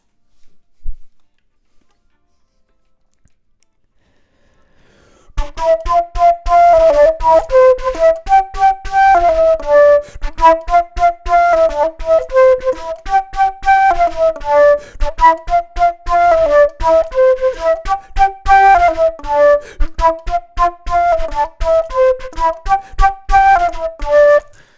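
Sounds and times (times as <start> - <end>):
flute: 5.4 - 24.7.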